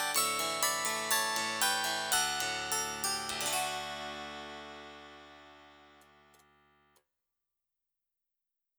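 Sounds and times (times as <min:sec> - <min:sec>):
harpsichord: 0:00.0 - 0:06.4.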